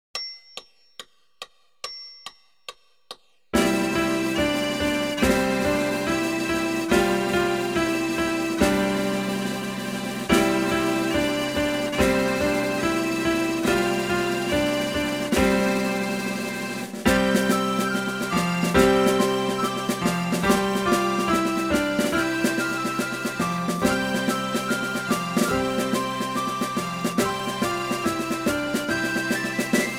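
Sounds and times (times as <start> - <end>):
bagpipe: 3.6 - 29.9.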